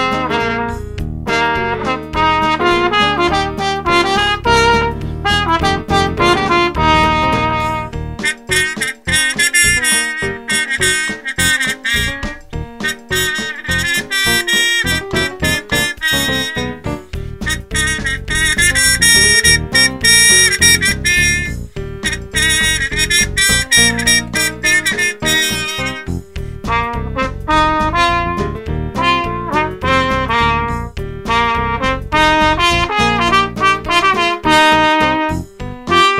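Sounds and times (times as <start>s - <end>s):
jazz music: 0.0s - 36.1s.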